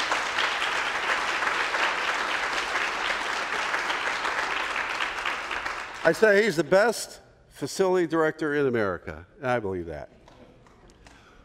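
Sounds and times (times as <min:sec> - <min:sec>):
audience applause: 0:00.0 - 0:06.6
speech: 0:06.0 - 0:10.2.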